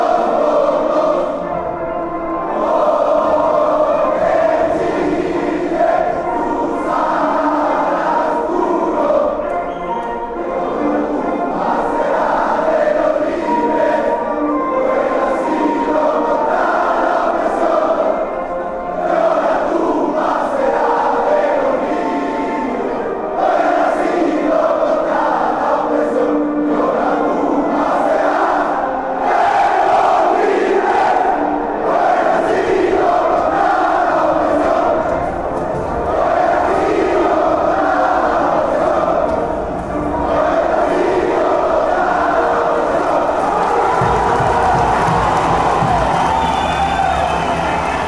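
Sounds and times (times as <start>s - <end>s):
national anthem: 0.0s - 48.0s.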